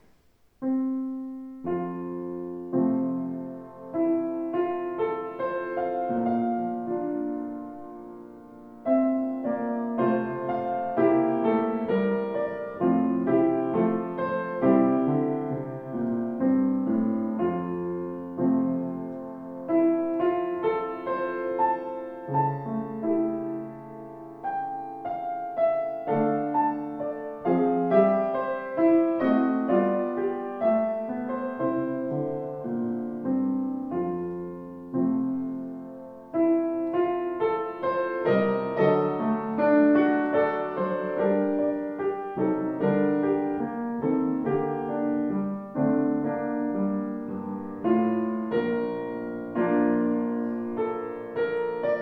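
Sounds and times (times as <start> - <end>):
Feurich piano: 0.0 - 52.0.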